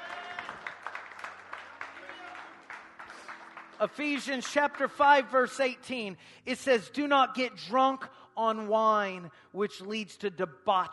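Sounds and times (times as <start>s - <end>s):
audience clapping hands: 0.0s - 5.6s
speech: 3.8s - 10.9s.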